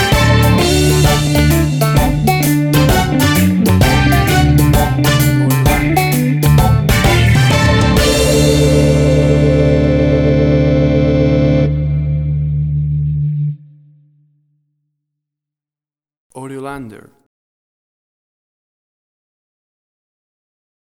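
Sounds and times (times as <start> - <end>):
cool reggae music: 0.0 - 13.5.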